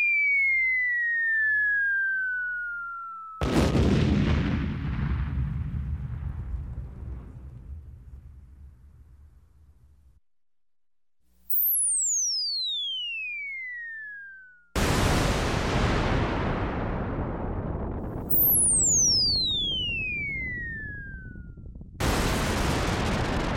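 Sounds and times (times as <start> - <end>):
bomb falling: 0.2 - 9.9, 14.8 - 23.5
bomb explosion: 3.4 - 9.8, 14.8 - 23.5.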